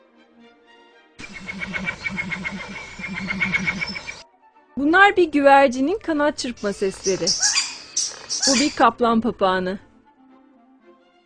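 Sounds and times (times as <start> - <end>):
Vogelkop bowerbird song: 1.2 - 4.2, 6.4 - 9.1
speech: 1.3 - 4.2, 4.8 - 7.5, 8.5 - 9.9.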